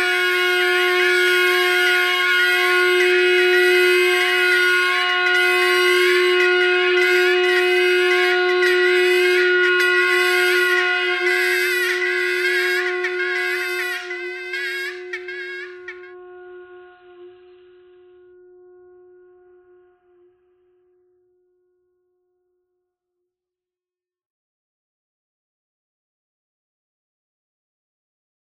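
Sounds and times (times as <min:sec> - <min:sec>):
bagpipe playing: 0:00.0 - 0:20.3.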